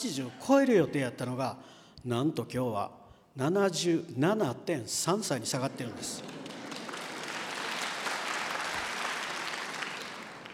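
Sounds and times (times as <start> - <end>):
speech: 0.0 - 6.4
audience applause: 5.5 - 10.5.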